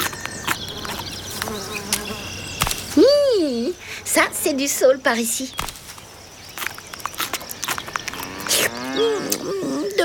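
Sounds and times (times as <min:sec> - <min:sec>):
crunching and rustling steps: 0:00.0 - 0:09.0
speech: 0:03.7 - 0:05.7
cows mooing: 0:08.1 - 0:09.9.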